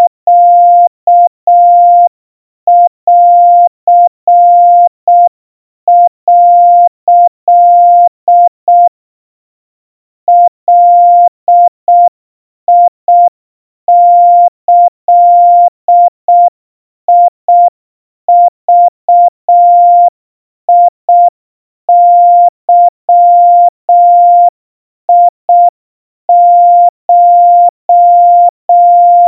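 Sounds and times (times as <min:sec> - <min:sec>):
Morse code tones at 700 Hz: 0:00.0 - 0:02.1, 0:02.7 - 0:05.3, 0:05.9 - 0:08.9, 0:10.3 - 0:12.1, 0:12.7 - 0:13.3, 0:13.9 - 0:16.5, 0:18.3 - 0:20.1, 0:21.9 - 0:24.5, 0:25.1 - 0:25.7, 0:26.3 - 0:29.2.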